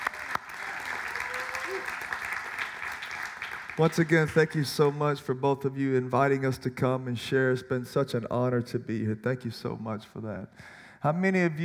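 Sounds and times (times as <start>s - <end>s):
audience applause for the pastor: 0.0s - 4.6s
speech: 1.7s - 2.2s, 3.8s - 11.6s.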